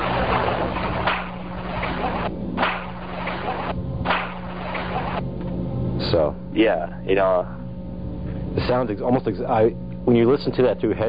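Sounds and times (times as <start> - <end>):
low constant hum: 0.0 - 11.0
single sharp hand clap: 0.8 - 5.2
speech: 6.1 - 7.6, 8.6 - 11.0.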